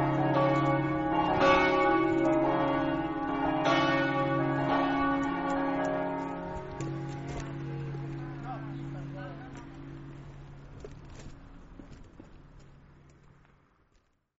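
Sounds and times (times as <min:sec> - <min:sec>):
bells ringing: 0:00.0 - 0:11.1
footsteps walking: 0:00.0 - 0:14.2.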